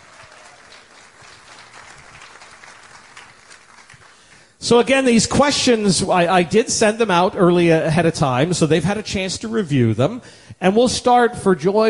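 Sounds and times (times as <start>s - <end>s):
audience applause: 0.0s - 4.5s
speech: 4.6s - 11.8s.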